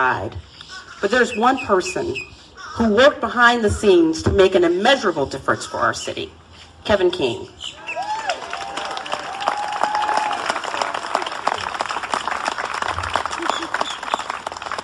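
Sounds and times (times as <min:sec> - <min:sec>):
speech: 0:00.0 - 0:07.8
rising whistles: 0:07.7 - 0:08.3, 0:13.3 - 0:14.4
people cheering: 0:07.8 - 0:14.8
audience applause: 0:07.9 - 0:14.8.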